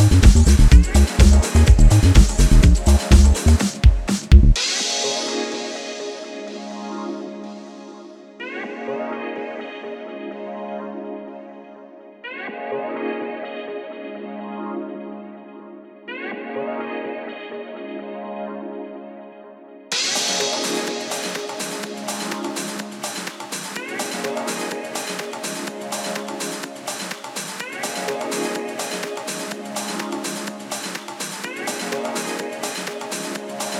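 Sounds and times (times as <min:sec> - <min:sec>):
bass mix: 0:00.0 - 0:04.6.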